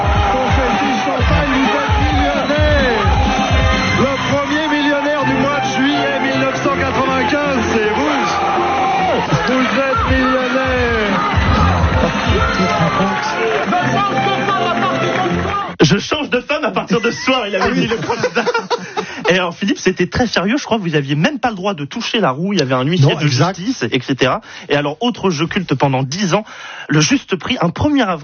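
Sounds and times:
studio audience cheering and shouting with joy: 0.0 - 15.8
laughter: 9.0 - 15.5, 16.9 - 19.8, 22.9 - 23.8
speech: 19.6 - 28.2.

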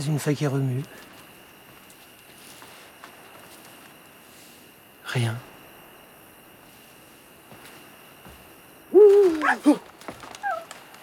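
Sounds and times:
speech: 0.0 - 1.2, 5.2 - 5.5, 9.1 - 9.9
owl hooting at night: 8.9 - 9.8, 10.4 - 10.7.

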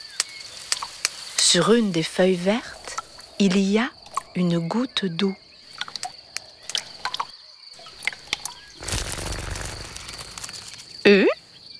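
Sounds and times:
speech: 1.5 - 2.8, 3.4 - 5.4
ladybug wings buzzing: 8.1 - 11.1.

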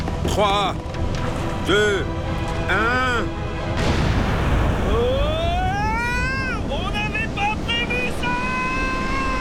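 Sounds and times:
speech: 0.4 - 1.0, 1.6 - 4.0
explosives blowing up a lava mountain: 3.8 - 9.3.

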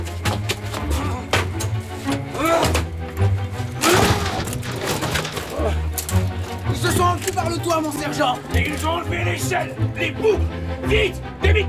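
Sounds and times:
splintering cracks: 0.2 - 9.1
voices shouting: 0.7 - 11.6
door being battered and forced open: 3.8 - 5.9
speech: 8.0 - 11.6.

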